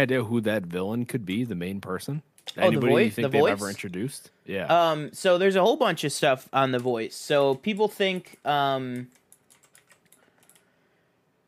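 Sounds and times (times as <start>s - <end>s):
speech: 0.0s - 9.2s
typing on a computer keyboard: 6.7s - 10.7s.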